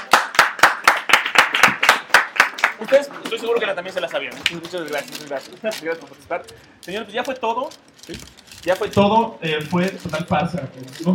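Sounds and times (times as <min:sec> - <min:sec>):
audience claps for a quiz participant at a film-themed talk event: 0:00.0 - 0:03.4
speech: 0:02.8 - 0:11.1.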